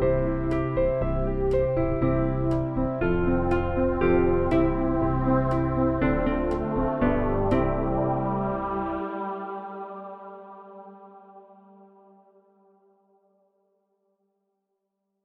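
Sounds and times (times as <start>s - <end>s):
backing music: 0.0s - 9.8s.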